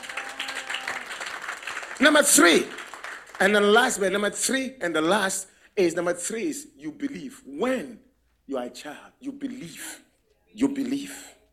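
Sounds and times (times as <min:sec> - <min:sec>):
audience clapping: 0:00.0 - 0:04.2
speech: 0:02.0 - 0:02.8, 0:03.4 - 0:11.3.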